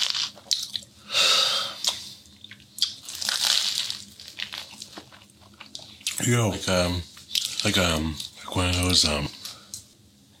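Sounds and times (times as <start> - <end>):
biting and chewing crunchy bread crostini: 0.0 - 0.8, 1.9 - 5.9
speech: 6.2 - 9.4.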